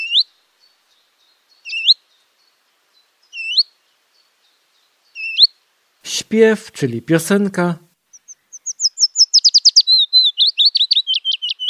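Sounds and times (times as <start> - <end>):
willow warbler alarm call: 0.0 - 5.6, 8.0 - 11.6
speech: 6.3 - 7.8.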